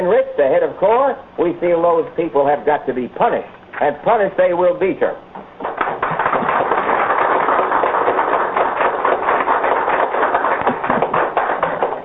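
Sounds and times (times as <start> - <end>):
speech: 0.0 - 5.5
Washington, D.C. coffeehouse audience applause: 5.6 - 12.0.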